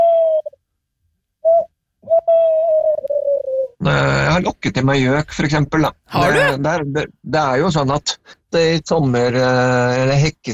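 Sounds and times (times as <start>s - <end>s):
tawny owl hooting: 0.0s - 0.6s, 1.5s - 3.8s
speech: 3.9s - 10.5s.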